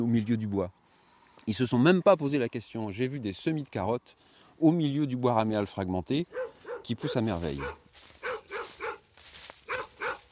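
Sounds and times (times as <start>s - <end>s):
speech: 0.0s - 0.8s, 1.4s - 8.1s
border collie barking: 6.3s - 10.3s.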